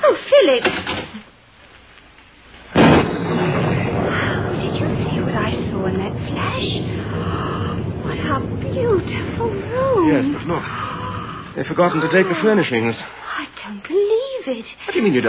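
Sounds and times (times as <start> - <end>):
speech: 0.5 - 0.9, 11.6 - 15.2
thunder crack and rumble during a lightning storm: 2.7 - 13.0.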